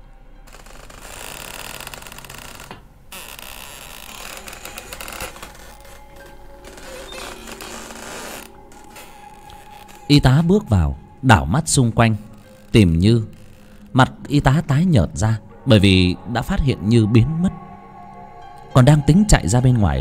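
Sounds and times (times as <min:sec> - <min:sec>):
heavy door creaking open: 0:00.5 - 0:15.6
speech: 0:10.1 - 0:13.4, 0:14.0 - 0:17.6, 0:18.8 - 0:20.0.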